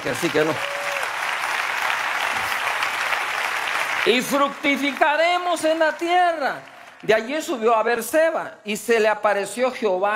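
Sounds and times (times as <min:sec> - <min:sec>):
speech: 0:00.0 - 0:00.8, 0:04.0 - 0:10.1
applause: 0:00.0 - 0:07.6.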